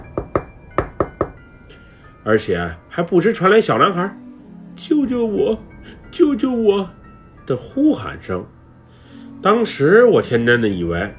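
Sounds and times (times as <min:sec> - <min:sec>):
urgent knocking on a door: 0:00.0 - 0:01.5
speech: 0:02.2 - 0:04.2, 0:04.8 - 0:08.6, 0:09.4 - 0:11.1.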